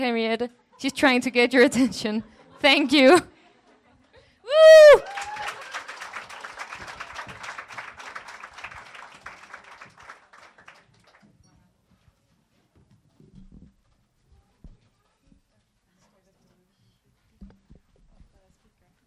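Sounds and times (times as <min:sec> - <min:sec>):
speech: 0:00.0 - 0:03.3, 0:04.5 - 0:05.6
audience clapping at a presentation event: 0:04.9 - 0:11.4.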